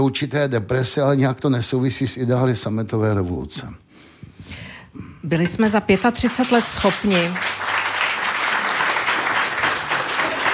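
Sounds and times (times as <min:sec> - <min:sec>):
speech: 0:00.0 - 0:03.8, 0:05.2 - 0:07.7
audience applause: 0:06.0 - 0:10.5.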